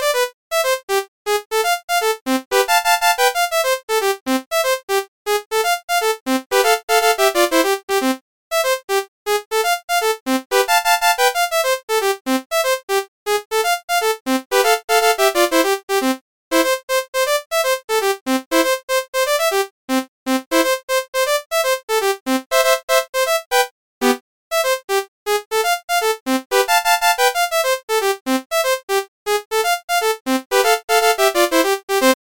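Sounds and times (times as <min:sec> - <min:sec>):
midi game music: 0:00.0 - 0:32.2.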